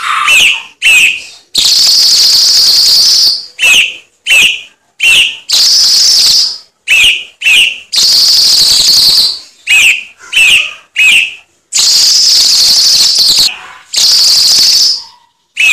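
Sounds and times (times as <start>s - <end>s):
cucak cungkok singing upslurred whistles: 0.0s - 15.7s.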